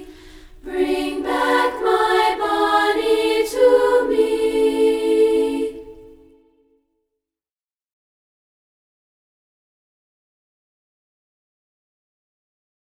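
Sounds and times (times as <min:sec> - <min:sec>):
a cappella singing: 0:00.0 - 0:06.7.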